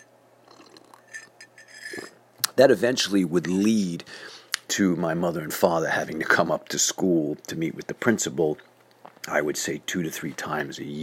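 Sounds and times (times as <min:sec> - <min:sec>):
person sipping tea: 0:00.4 - 0:02.2
speech: 0:02.6 - 0:08.7, 0:09.3 - 0:11.0.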